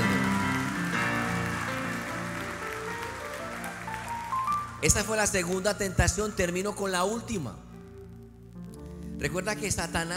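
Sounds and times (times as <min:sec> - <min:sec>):
church audience applauding: 0:00.0 - 0:05.8
speech: 0:04.8 - 0:07.7, 0:09.2 - 0:10.1.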